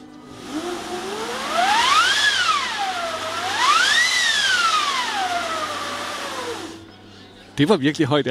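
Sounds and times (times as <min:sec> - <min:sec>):
orchestral wind machine being cranked: 0:00.3 - 0:06.8
speech: 0:07.6 - 0:08.2.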